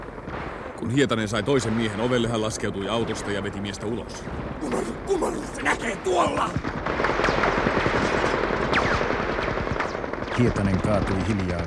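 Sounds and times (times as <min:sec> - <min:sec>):
speech: 0:00.8 - 0:07.6, 0:10.4 - 0:11.6
machine gun burst: 0:06.6 - 0:11.6.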